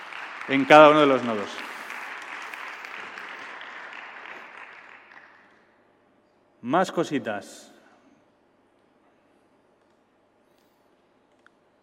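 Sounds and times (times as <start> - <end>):
audience applauding: 0.0 - 5.6
speech: 0.5 - 1.7, 6.6 - 7.7.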